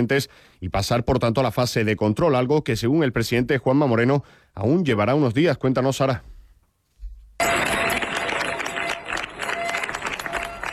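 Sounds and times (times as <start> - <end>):
speech: 0.0 - 6.3
neighbours of Niebla applauding: 7.4 - 10.7.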